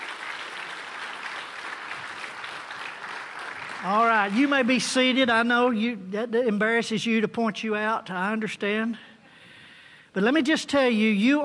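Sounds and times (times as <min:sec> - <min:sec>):
audience applause: 0:00.0 - 0:05.0
speech: 0:03.8 - 0:09.1, 0:10.2 - 0:11.4.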